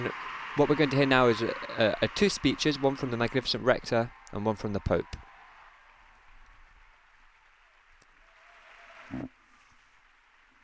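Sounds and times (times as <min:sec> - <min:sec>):
speech: 0:00.0 - 0:05.2
crowd applause in a university hall: 0:00.0 - 0:09.3.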